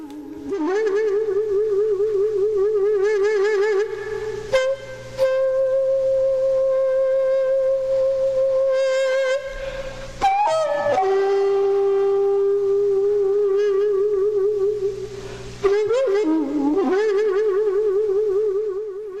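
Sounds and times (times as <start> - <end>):
daegeum bamboo transverse flute with deep buzzing tone: 0.0 - 19.1.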